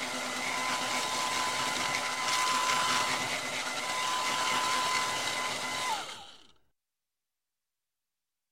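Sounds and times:
hair dryer drying hair in a barber shop: 0.0 - 6.4.

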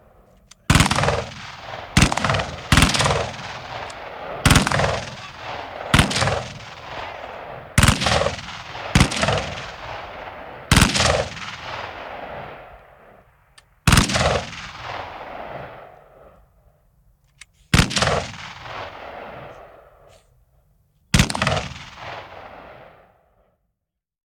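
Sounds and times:
machine gun firing: 0.7 - 12.4, 13.9 - 15.2, 21.2 - 22.5.

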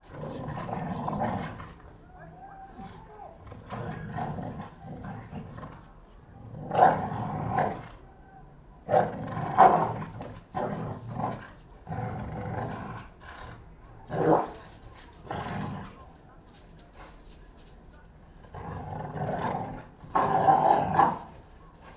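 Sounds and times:
two pit bulls fighting with rasping growls and snarls: 0.0 - 2.0, 2.6 - 8.1, 8.8 - 16.1, 18.4 - 21.9.

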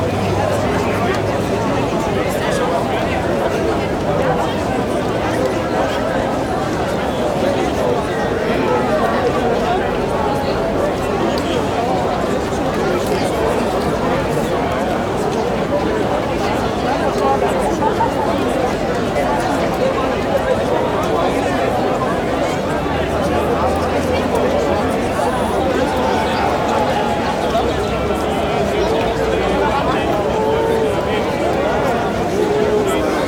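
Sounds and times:
crowd walla in a busy outdoor city square: 0.0 - 33.2.

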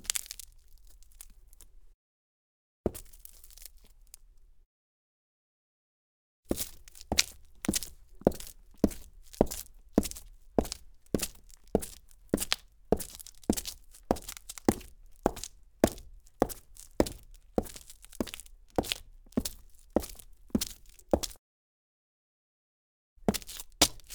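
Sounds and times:
dress boots footsteps on gritty cement: 2.9 - 4.0, 6.5 - 21.4, 23.3 - 24.1.

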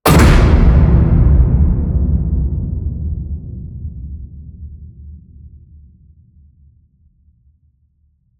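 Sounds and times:
designed cinematic slam hit: 0.1 - 5.5.

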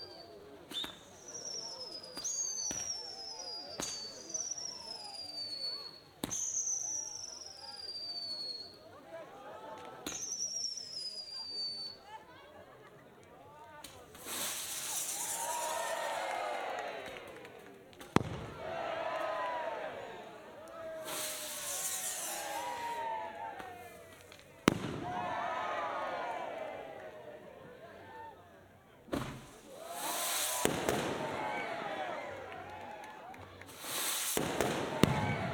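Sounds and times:
people at a firework display: 0.0 - 35.5
firework display outdoors: 0.7 - 8.6, 13.8 - 26.3, 29.1 - 35.5.

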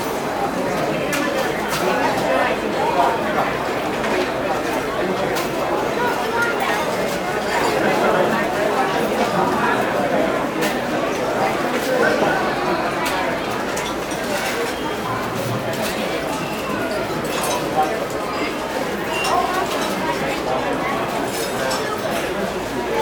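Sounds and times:
busy deli restaurant ambience: 0.0 - 22.9.

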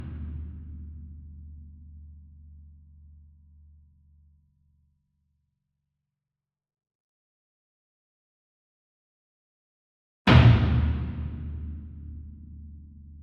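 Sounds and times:
40 inch concert bass drum hit hard with beater: 10.3 - 11.9.

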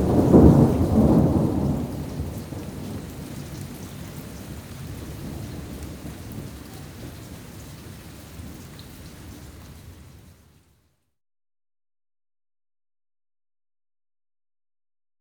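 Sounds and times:
thunderstorm: 0.0 - 8.6.

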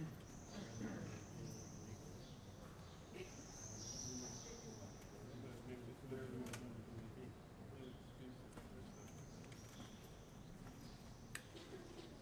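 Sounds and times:
daytime ambience: 0.0 - 12.2.

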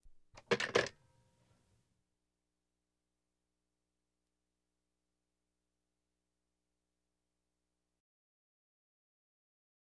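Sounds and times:
household telephones: 0.4 - 0.9.

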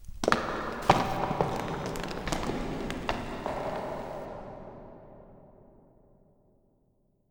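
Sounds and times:
rocks: 0.0 - 4.3.

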